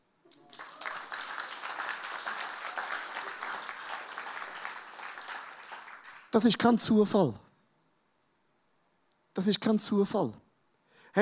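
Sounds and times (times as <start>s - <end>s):
crowd applause: 0.3s - 6.3s
speech: 6.3s - 7.5s, 9.4s - 10.4s.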